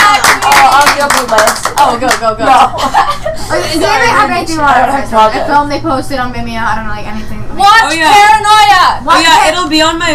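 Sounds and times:
crowd applauding: 0.0 - 2.3
speech: 1.1 - 10.1
laughter: 1.8 - 4.3.

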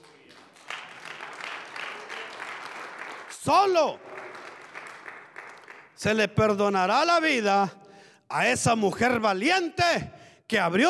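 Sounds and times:
audience applauding: 0.0 - 6.0
speech: 3.4 - 4.1, 6.0 - 10.8.

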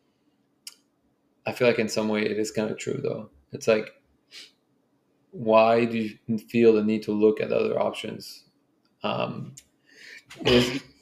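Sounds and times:
speech: 1.5 - 4.6, 5.3 - 8.4, 9.0 - 9.7, 10.3 - 10.9
sneeze: 10.3 - 10.9.

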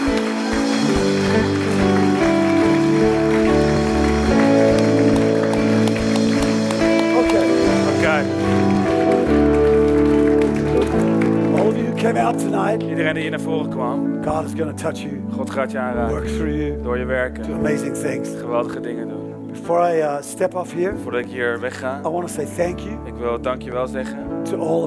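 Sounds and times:
large audience applause: 0.0 - 12.8
sustained musical tones: 0.0 - 13.4
speech: 12.3 - 24.8.

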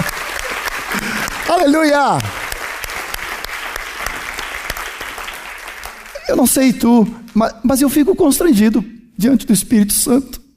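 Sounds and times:
audience applause: 0.0 - 6.8
speech: 1.5 - 2.4, 6.3 - 10.4.

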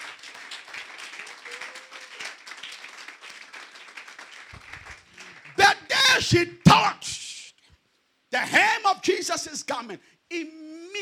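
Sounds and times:
crowd clapping: 0.0 - 6.9
speech: 6.2 - 7.1, 8.4 - 10.6.

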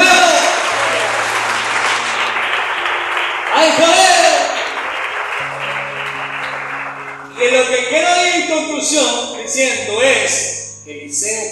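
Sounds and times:
audience applause: 0.0 - 8.0
speech: 9.0 - 11.5.

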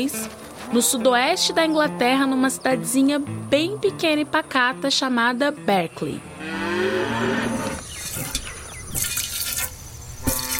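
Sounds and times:
speech: 0.0 - 6.6
cow mooing: 6.3 - 7.8, 10.2 - 10.5.

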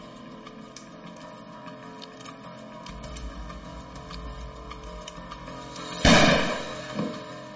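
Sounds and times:
handgun going off accidentally: 6.0 - 6.8.

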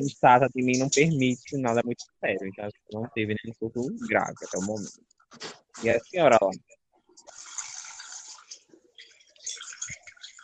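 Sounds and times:
speech: 0.0 - 7.4
woman urinating: 7.2 - 10.4.

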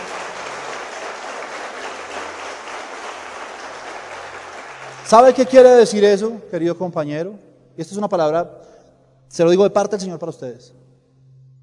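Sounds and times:
loud audience applause: 0.0 - 5.6
speech: 5.1 - 8.7, 9.3 - 10.8.

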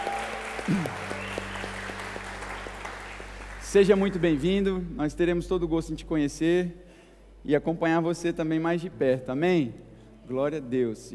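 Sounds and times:
audience applause: 0.0 - 4.7
speech: 3.7 - 6.8, 7.4 - 11.1.

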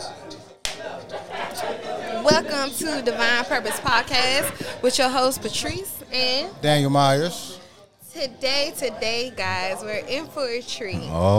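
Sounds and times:
hand clap as edit marker: 0.6 - 0.9
speech: 2.2 - 7.5, 8.2 - 11.3.

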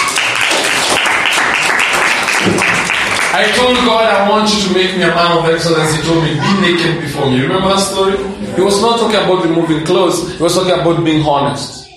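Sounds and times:
audience clapping: 0.0 - 3.9
speech: 3.4 - 11.8.

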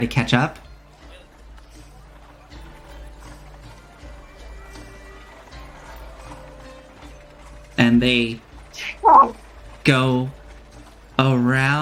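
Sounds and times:
speech: 0.0 - 0.6, 7.8 - 10.4, 11.2 - 11.8
horse hooves trotting: 0.0 - 11.8.

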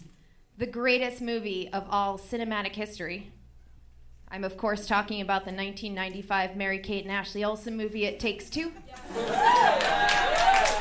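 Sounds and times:
speech: 0.6 - 3.4, 4.3 - 10.3
crowd applause: 9.0 - 10.7
whoops and cheers: 9.1 - 10.7.

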